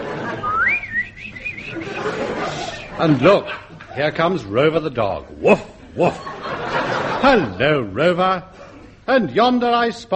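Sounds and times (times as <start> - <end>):
laughter: 0.0 - 9.1
person whistling imitation of birds twittering: 0.4 - 2.0
speech: 3.0 - 6.4, 7.2 - 10.1.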